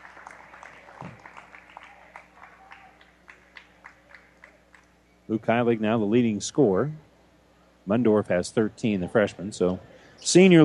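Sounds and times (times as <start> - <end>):
crowd applause at a basketball game: 0.0 - 5.0
speech: 5.3 - 7.1, 7.9 - 10.6.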